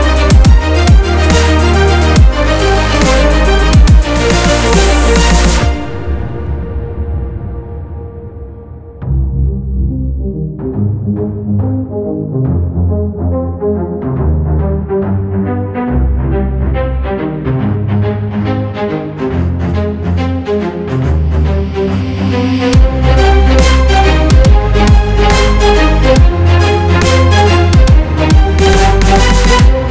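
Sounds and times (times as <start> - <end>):
epic cinematic trailer music: 0.0 - 29.8.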